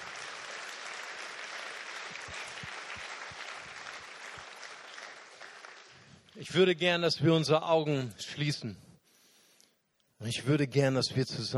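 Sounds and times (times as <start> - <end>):
audience applause: 0.0 - 6.2
speech: 6.4 - 8.9, 10.2 - 11.5.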